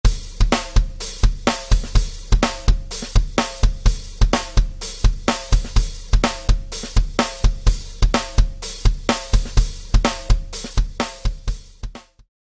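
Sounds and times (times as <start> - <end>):
Mapex Black Panther drum played with sticks: 0.0 - 12.3.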